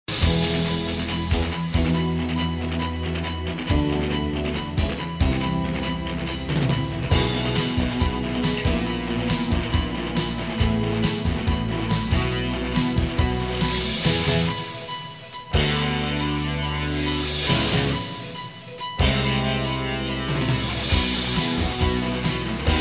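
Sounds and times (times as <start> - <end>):
light rock music: 0.0 - 22.8.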